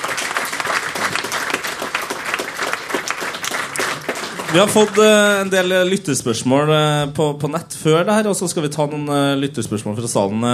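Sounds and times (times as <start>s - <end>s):
audience applause: 0.0s - 5.7s
speech: 4.5s - 10.5s.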